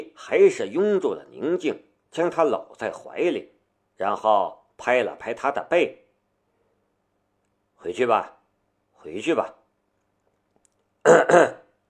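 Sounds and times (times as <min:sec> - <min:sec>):
speech: 0:00.2 - 0:06.0, 0:07.8 - 0:08.4, 0:09.0 - 0:09.6, 0:11.0 - 0:11.6
person coughing: 0:11.0 - 0:11.8.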